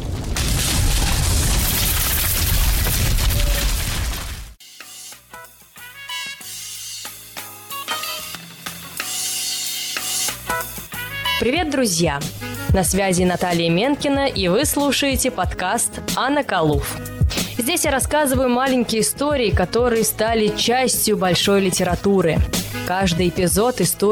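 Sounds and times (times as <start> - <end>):
deafening crash of a collapsing building: 0.0 - 4.6
speech: 11.4 - 24.1.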